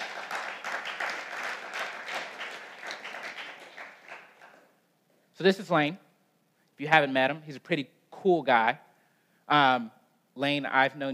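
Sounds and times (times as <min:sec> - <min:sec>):
audience round of applause: 0:00.0 - 0:04.7
speech: 0:05.4 - 0:06.1, 0:06.8 - 0:08.9, 0:09.5 - 0:11.1.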